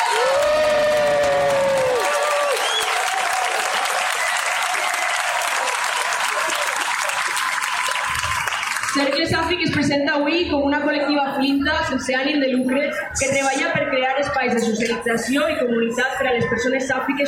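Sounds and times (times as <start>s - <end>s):
audience applause: 0.0s - 9.2s
speech: 9.0s - 17.2s.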